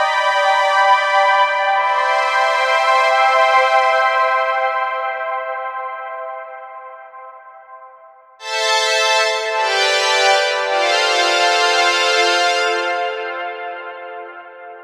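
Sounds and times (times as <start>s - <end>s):
brass: 0.0s - 5.2s, 8.4s - 14.8s
strings: 8.4s - 13.9s.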